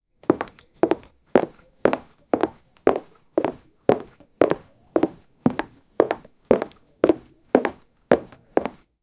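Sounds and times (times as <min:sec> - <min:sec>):
Louboutin high heels clicking: 0:00.3 - 0:08.8.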